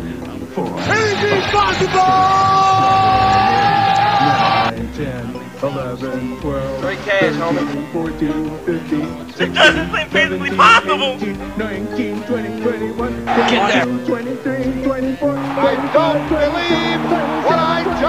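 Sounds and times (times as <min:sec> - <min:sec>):
laughter: 0:00.1 - 0:04.7, 0:06.8 - 0:18.0
speech: 0:00.6 - 0:02.4, 0:05.0 - 0:18.0
crowd cheering, yelling and whooping: 0:00.8 - 0:04.7, 0:09.4 - 0:11.3, 0:13.2 - 0:13.9, 0:15.2 - 0:18.0.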